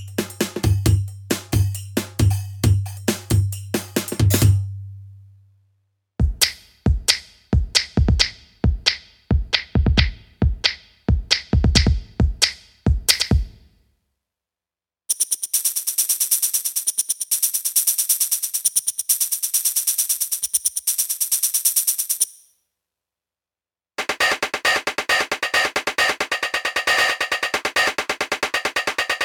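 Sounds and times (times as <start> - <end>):
drum loops: 0.0 - 4.6, 6.2 - 13.7, 24.0 - 29.2.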